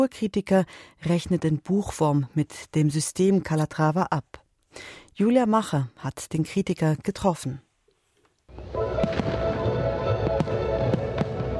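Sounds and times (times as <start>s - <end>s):
speech: 0.0s - 7.6s
fireworks exploding at an opening celebration: 8.5s - 11.5s.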